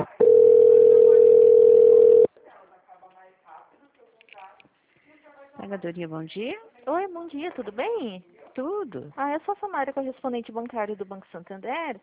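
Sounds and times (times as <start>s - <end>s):
buzzy steady telephone line tone while a call is transferred: 0.2s - 2.3s
speech: 5.8s - 12.0s.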